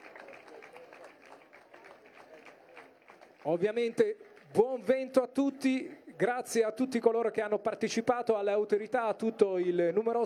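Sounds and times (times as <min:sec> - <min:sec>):
audience applause: 0:00.0 - 0:04.6
speech: 0:03.4 - 0:10.2.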